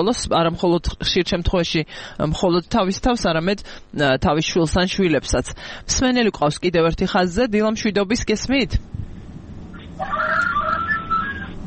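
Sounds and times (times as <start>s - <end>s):
speech: 0.0s - 9.0s
low hum: 0.0s - 11.6s
rooster crowing: 10.0s - 11.6s.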